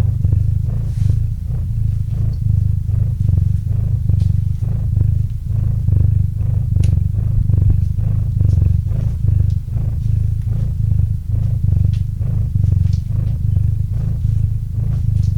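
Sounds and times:
cat purring: 0:00.0 - 0:15.3.

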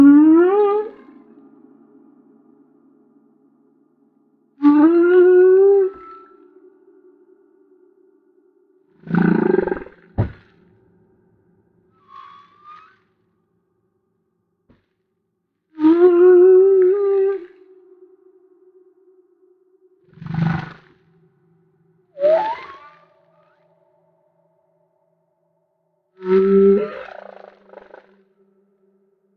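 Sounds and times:
Humpback whale song: 0:00.0 - 0:03.8, 0:04.6 - 0:13.2, 0:15.7 - 0:20.8, 0:22.1 - 0:24.0, 0:26.2 - 0:29.1.

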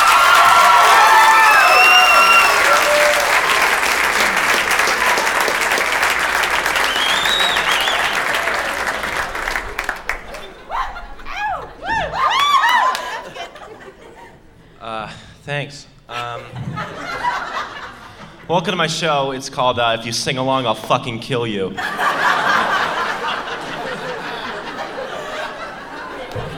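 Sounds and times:
people shouting: 0:00.0 - 0:03.4, 0:10.7 - 0:13.2
whistles and whoops: 0:00.0 - 0:03.5, 0:06.6 - 0:08.6, 0:10.4 - 0:13.2
audience clapping for a comedian's entrance at a live show: 0:00.0 - 0:13.5, 0:21.9 - 0:26.5
laughter: 0:00.0 - 0:14.8, 0:16.1 - 0:19.5, 0:21.7 - 0:26.5
speech: 0:18.5 - 0:22.2.

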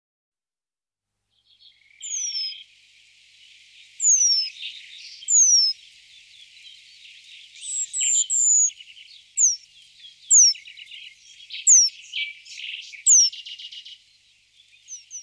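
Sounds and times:
Eurasian penduline tit calls: 0:01.3 - 0:15.2.

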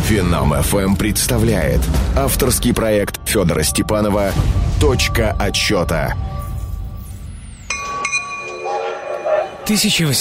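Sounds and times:
speech: 0:00.1 - 0:06.3, 0:09.7 - 0:10.1
sharp glassy clinks: 0:07.6 - 0:09.6.

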